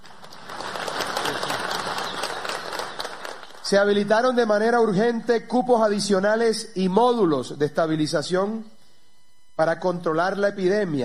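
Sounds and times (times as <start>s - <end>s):
audience applause: 0.0s - 3.7s
speech: 3.7s - 8.8s, 9.6s - 11.0s.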